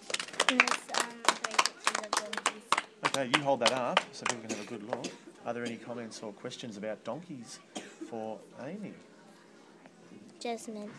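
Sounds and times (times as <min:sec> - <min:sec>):
group clapping after a short talk about donkeys: 0:00.0 - 0:05.1
speech: 0:00.5 - 0:00.8, 0:03.2 - 0:09.1, 0:10.4 - 0:10.9.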